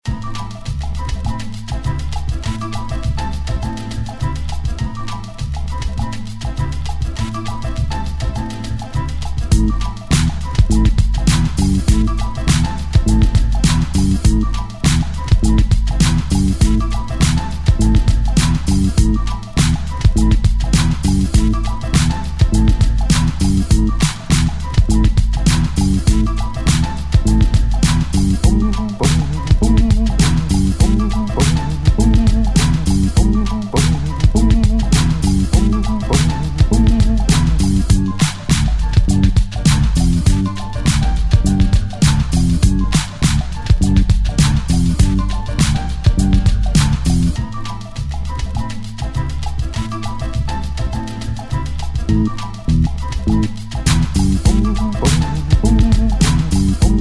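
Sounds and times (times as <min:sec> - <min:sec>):
instrumental music: 0:00.0 - 0:56.9.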